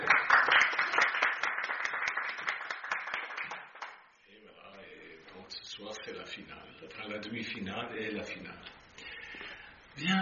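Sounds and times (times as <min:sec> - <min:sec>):
applause: 0:00.0 - 0:04.1
speech: 0:06.0 - 0:08.8, 0:10.0 - 0:10.2.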